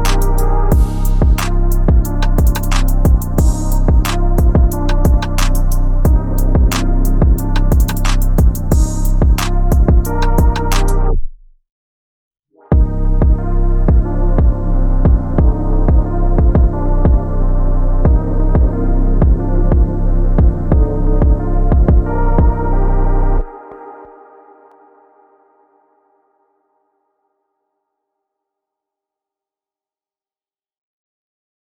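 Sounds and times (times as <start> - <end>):
hip-hop remix: 0.0 - 11.2, 12.7 - 24.4.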